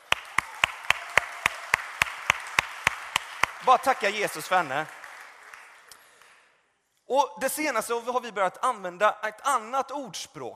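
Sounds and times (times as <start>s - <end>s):
audience applause: 0.0s - 6.4s
speech: 3.6s - 5.0s, 7.1s - 10.5s.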